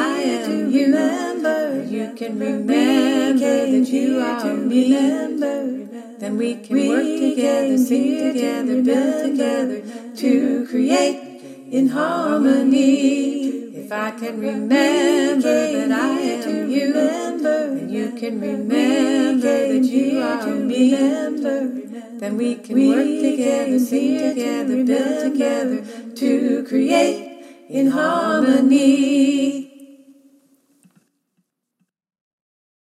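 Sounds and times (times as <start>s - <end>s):
alto part of a choir singing: 0.0s - 30.0s.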